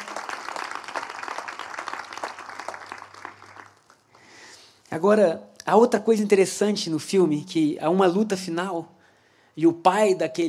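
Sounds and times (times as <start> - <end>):
audience applause: 0.0 - 4.1
speech: 4.9 - 9.0, 9.6 - 10.4.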